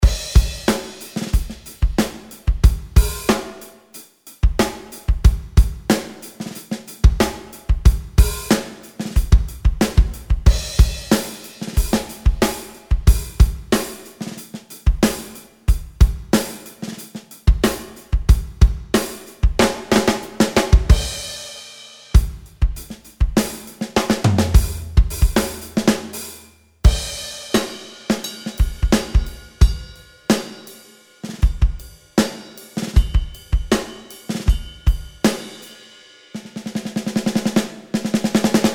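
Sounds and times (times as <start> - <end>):
pop super kit on Ketron Audya: 0.0 - 38.7.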